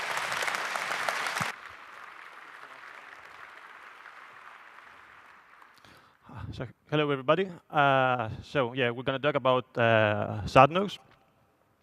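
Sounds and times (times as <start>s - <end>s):
audience applause welcoming a speaker presenting a satellite ground-station project: 0.0s - 6.1s
speech: 6.5s - 11.1s.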